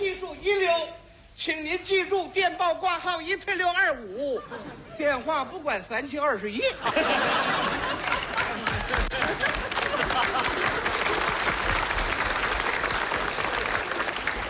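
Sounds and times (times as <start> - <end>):
speech: 1.4 - 8.1
laughter: 4.3 - 5.2, 6.8 - 12.1
audience applause: 7.3 - 14.4.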